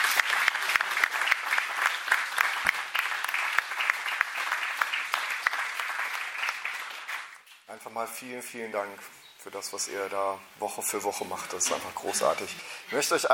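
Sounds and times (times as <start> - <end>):
audience clapping: 0.0 - 7.7
speech: 7.8 - 13.3.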